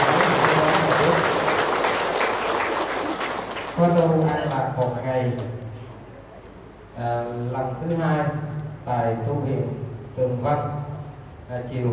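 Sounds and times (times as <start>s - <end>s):
audience applause: 0.0s - 3.9s
speech: 5.0s - 5.6s, 7.0s - 10.8s, 11.5s - 11.9s.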